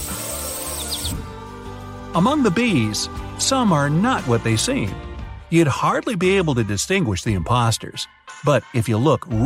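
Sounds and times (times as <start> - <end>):
birds singing in a meadow: 0.6 - 1.2
speech: 2.1 - 9.4.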